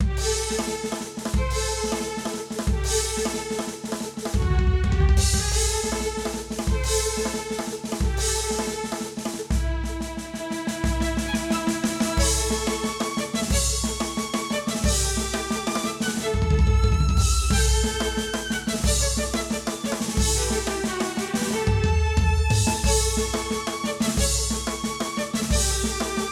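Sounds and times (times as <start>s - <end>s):
drums: 0.0s - 26.3s
violins: 0.0s - 26.3s.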